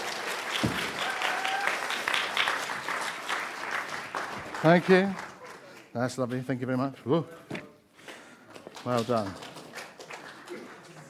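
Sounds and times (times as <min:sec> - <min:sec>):
audience applause: 0:00.0 - 0:05.9, 0:08.5 - 0:11.0
speech: 0:04.6 - 0:05.2, 0:06.0 - 0:07.5, 0:08.8 - 0:09.4.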